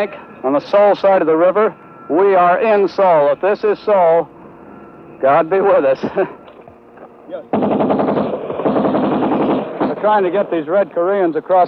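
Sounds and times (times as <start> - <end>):
speech: 0.0 - 4.4, 5.2 - 6.4, 7.3 - 7.9, 10.0 - 11.6
machine gun fire: 7.5 - 10.7.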